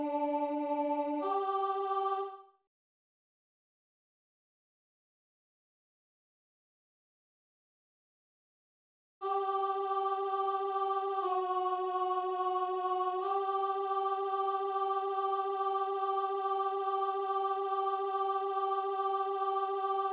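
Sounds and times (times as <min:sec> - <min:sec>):
alto voices singing a sacred work: 0:00.0 - 0:02.5, 0:09.2 - 0:20.1.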